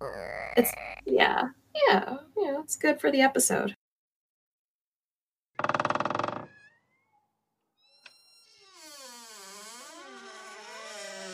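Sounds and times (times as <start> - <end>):
voice imitating a creaky door: 0.0 - 1.1, 8.4 - 11.3
speech: 0.6 - 3.8.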